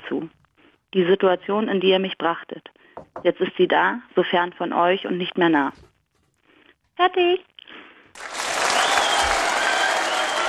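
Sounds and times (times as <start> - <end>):
speech: 0.1 - 5.9, 7.0 - 8.3
applause: 8.1 - 10.4.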